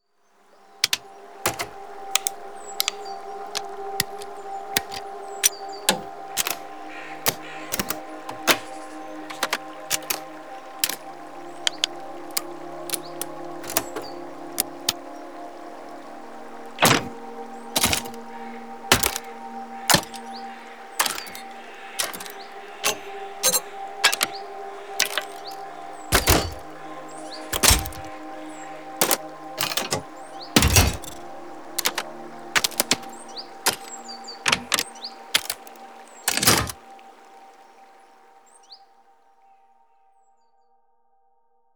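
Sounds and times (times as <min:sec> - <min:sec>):
tactile button clicks: 0:00.8 - 0:11.1, 0:11.7 - 0:15.0, 0:16.8 - 0:17.2, 0:17.8 - 0:18.2, 0:18.9 - 0:26.8, 0:27.4 - 0:28.3, 0:29.0 - 0:31.2, 0:31.8 - 0:36.8.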